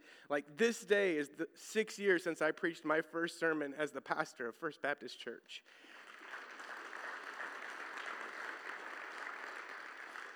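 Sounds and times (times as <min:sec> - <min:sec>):
speech: 0:00.3 - 0:06.0
audience applause: 0:05.9 - 0:10.3.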